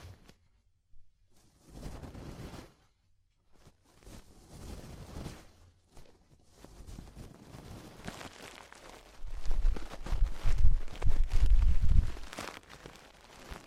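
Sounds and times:
deep ear cleaning: 0:09.2 - 0:12.3.

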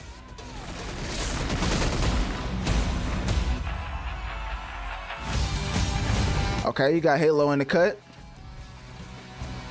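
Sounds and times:
gunshots from a gun being fired: 0:00.0 - 0:05.9
speech: 0:06.8 - 0:08.1.

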